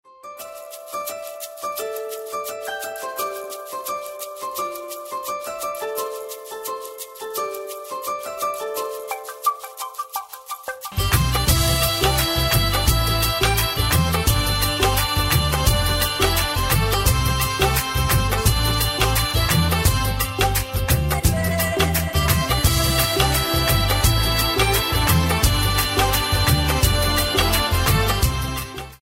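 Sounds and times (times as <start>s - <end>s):
instrumental ringtone: 0.2s - 29.0s.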